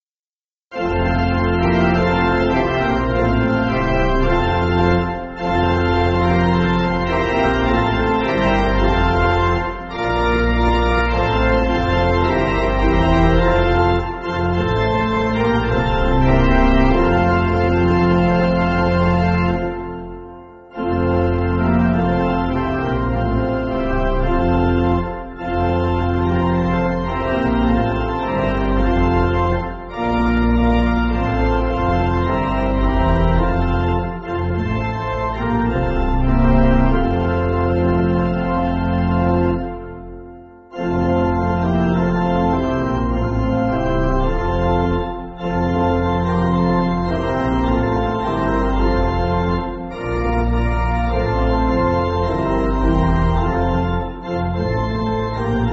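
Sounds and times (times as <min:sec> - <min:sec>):
pipe organ church music: 0:00.7 - 0:55.7.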